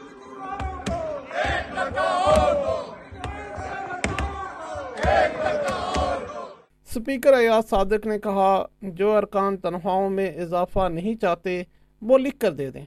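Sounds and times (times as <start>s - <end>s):
opposition members of parliament chanting slogans in protest: 0.0s - 6.7s
speech: 7.0s - 12.8s.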